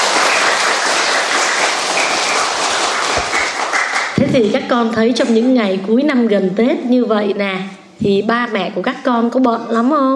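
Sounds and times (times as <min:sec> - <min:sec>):
children applauding: 0:00.0 - 0:04.2
speech: 0:04.4 - 0:10.1.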